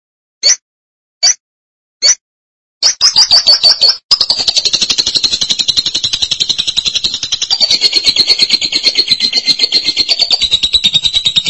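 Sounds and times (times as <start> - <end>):
lovebird chattering: 2.8 - 11.4.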